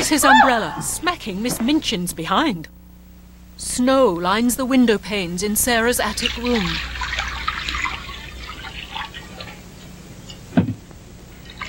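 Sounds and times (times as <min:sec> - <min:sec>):
speech: 0:00.1 - 0:02.8, 0:03.6 - 0:07.0
washing hands and face in water bowl: 0:05.1 - 0:10.0, 0:11.4 - 0:11.6.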